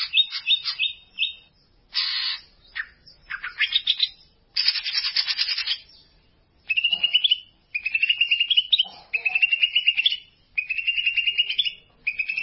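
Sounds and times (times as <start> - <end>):
greater green leafbird song: 0.0 - 12.4.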